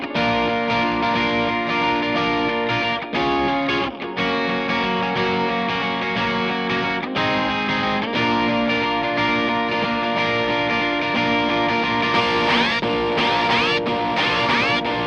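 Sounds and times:
guitar: 0.0 - 15.0.

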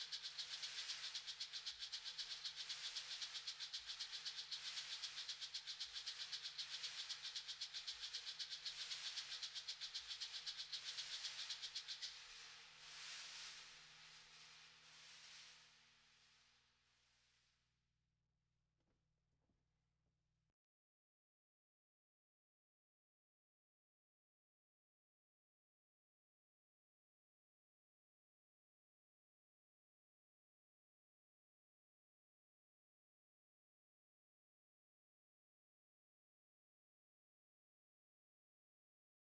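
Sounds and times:
acoustic percussion: 0.0 - 15.6.

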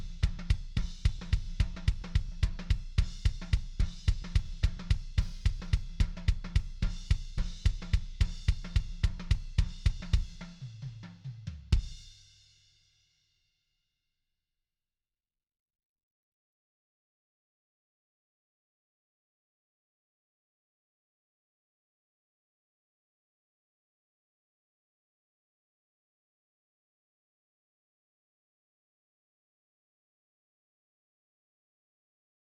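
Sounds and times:
kick drum: 0.0 - 10.5, 11.7 - 12.0.

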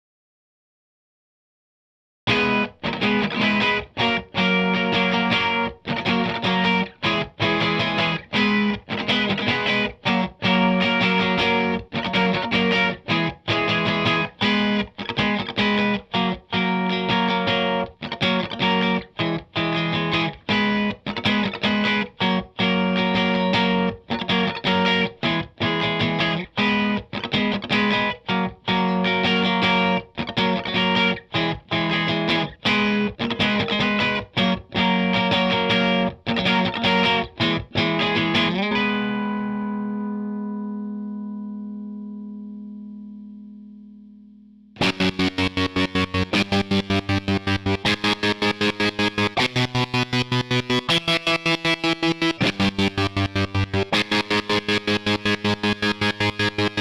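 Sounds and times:
guitar in C: 2.3 - 56.8.

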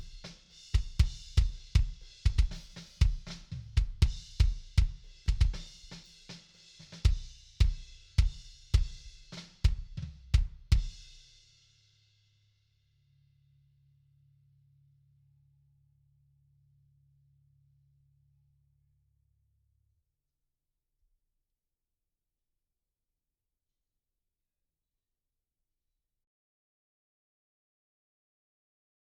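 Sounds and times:
kick drum: 0.0 - 6.0, 7.0 - 11.0.

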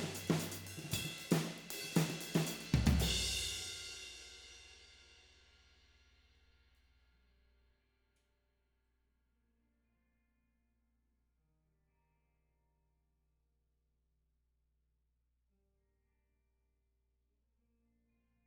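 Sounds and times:
tom drums: 0.0 - 4.6.

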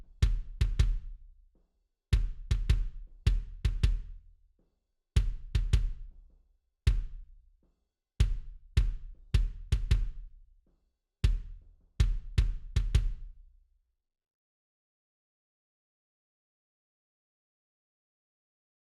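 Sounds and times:
kick drum: 0.0 - 1.6, 2.2 - 4.4, 5.2 - 7.6, 8.2 - 10.5, 11.2 - 13.5.

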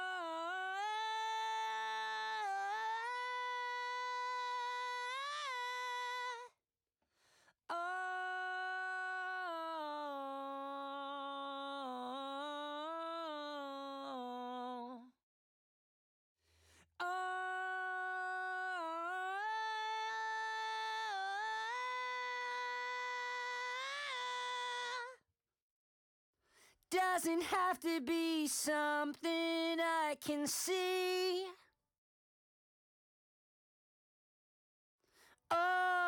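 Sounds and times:
lead vocals: 0.0 - 6.4, 7.7 - 15.0, 17.0 - 25.1, 26.9 - 31.6, 35.5 - 36.0.

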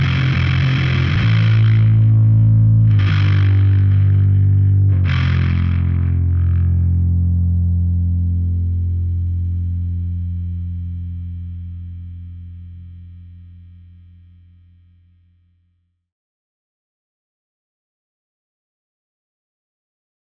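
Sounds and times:
bass: 0.0 - 16.1.

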